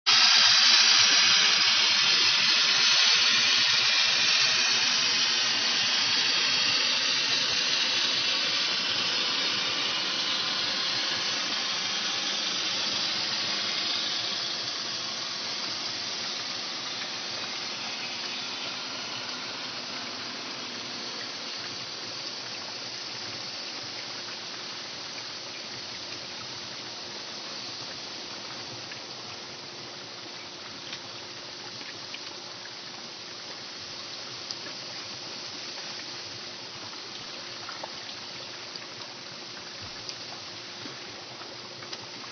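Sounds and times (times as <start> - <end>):
powerboat dropping off: 0.1 - 42.2.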